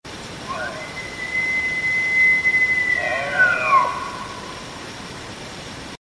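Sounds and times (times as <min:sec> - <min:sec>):
elk bugling: 0:00.4 - 0:04.9.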